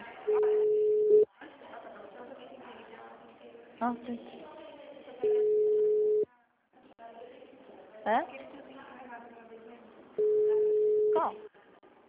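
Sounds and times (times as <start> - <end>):
telephone ringing tone during a call to a Santander bank branch: 0.4 - 1.2, 5.2 - 6.2, 10.2 - 11.3
speech: 3.8 - 4.5, 8.1 - 8.4.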